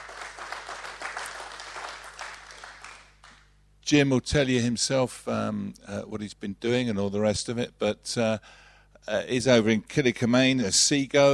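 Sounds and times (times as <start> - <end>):
audience applause: 0.0 - 3.4
speech: 3.9 - 11.3.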